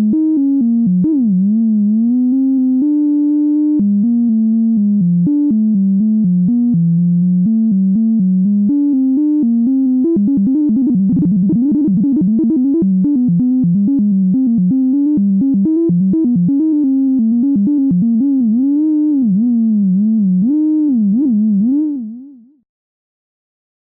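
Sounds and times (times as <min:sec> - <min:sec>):
Roland JV880 synthesizer with LFO modulation: 0:00.0 - 0:22.5.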